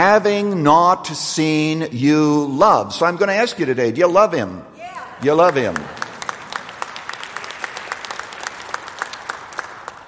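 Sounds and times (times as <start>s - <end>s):
speech: 0.1s - 6.0s
audience clapping: 5.2s - 10.0s.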